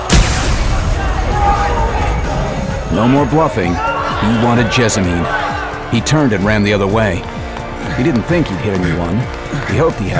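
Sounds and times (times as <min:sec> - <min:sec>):
sci-fi disruptor gunfire: 0:00.0 - 0:03.8
speech: 0:03.0 - 0:07.3, 0:07.9 - 0:10.1.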